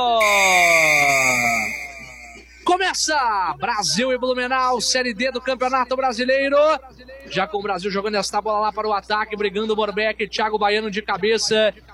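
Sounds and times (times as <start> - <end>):
referee's whistle blast starting a Brazilian Série D football match: 0.0 - 2.6
speech: 2.9 - 11.9.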